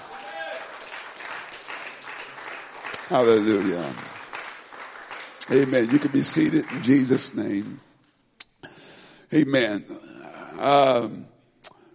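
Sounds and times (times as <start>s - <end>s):
audience clapping hands: 0.0s - 7.8s
speech: 3.1s - 4.1s, 5.5s - 7.9s, 9.3s - 10.0s, 10.6s - 11.3s.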